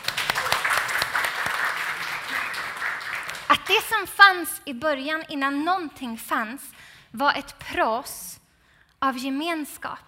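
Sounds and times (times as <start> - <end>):
audience applause: 0.0 - 3.6
speech: 3.7 - 8.3, 9.0 - 10.0.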